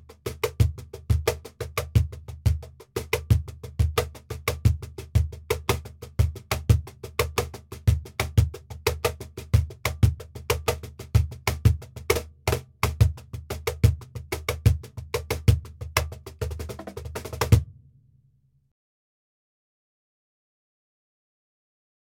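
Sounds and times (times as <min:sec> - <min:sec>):
cajon playing flamenco: 0:00.0 - 0:17.7.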